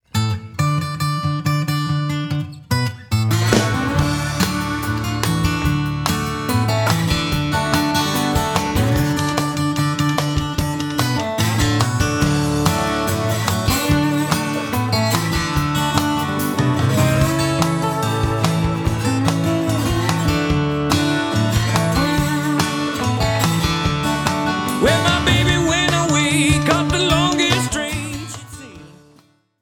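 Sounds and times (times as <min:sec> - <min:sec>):
blues music: 0:00.2 - 0:29.3.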